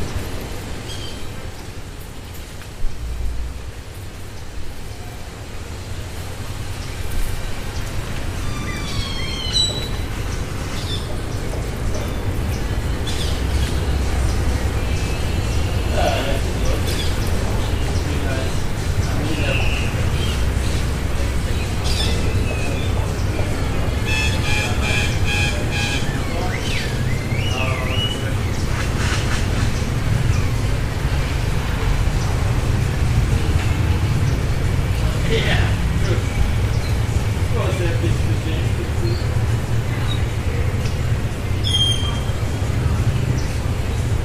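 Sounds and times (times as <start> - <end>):
birds singing evening songs: 0.0 - 1.6, 6.2 - 31.0, 33.6 - 44.2
faint voices: 9.6 - 44.2.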